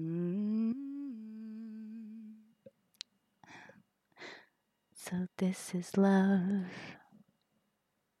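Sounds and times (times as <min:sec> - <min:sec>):
short soft song: 0:00.0 - 0:03.1, 0:04.9 - 0:07.2.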